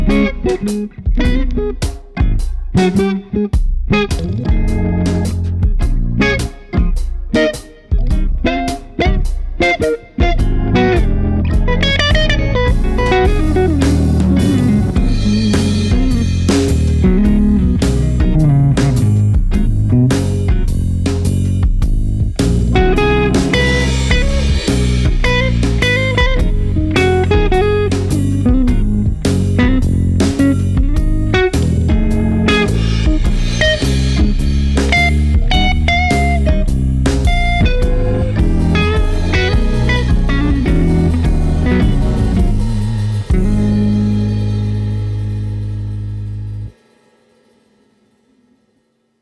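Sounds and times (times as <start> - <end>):
clean jazzy music: 0.0 - 46.8.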